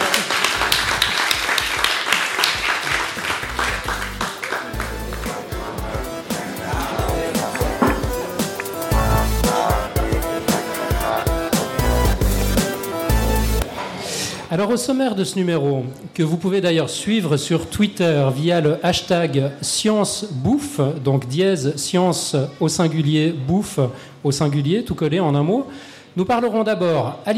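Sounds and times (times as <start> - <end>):
live audience applause: 0.0 - 12.6
tonal sounds: 4.0 - 13.7
speech: 14.6 - 27.3.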